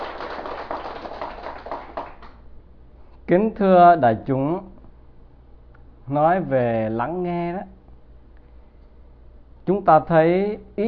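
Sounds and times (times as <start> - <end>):
audience applause at a Buddhist dharma talk: 0.0 - 2.4
speech: 3.3 - 4.7, 6.1 - 7.8, 9.7 - 10.8.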